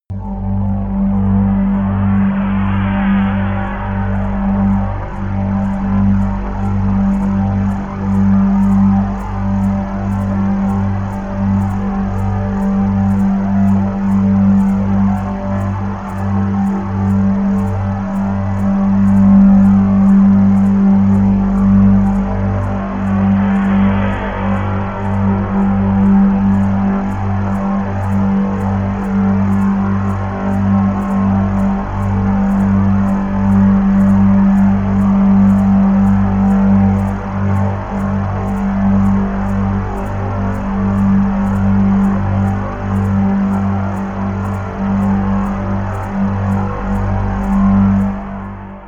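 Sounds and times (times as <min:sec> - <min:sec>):
bass: 0:00.0 - 0:48.8
synth pads: 0:00.0 - 0:48.8
shaker: 0:00.2 - 0:48.8.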